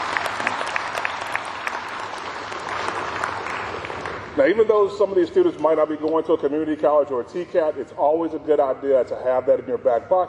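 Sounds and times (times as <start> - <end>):
audience applause: 0.0 - 4.8
speech: 4.4 - 10.2.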